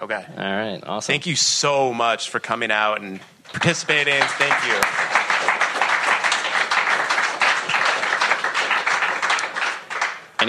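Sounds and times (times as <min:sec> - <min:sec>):
speech: 0:00.0 - 0:05.2
live audience applause: 0:03.6 - 0:10.4.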